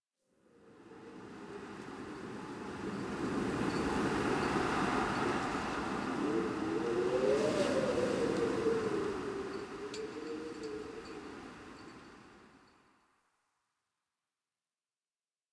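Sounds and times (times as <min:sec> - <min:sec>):
exterior winter wind: 0:00.4 - 0:13.2.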